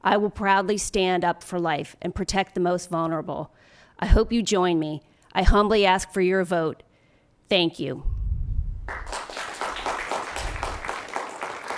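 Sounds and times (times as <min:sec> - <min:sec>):
speech: 0:00.0 - 0:06.9, 0:07.5 - 0:08.2
audience applause after a candidate's speech: 0:08.9 - 0:11.7.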